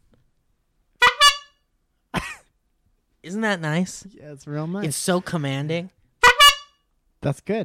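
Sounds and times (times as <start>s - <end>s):
horn honks: 1.0s - 1.6s, 6.2s - 6.8s
speech: 3.2s - 6.0s, 7.2s - 7.6s.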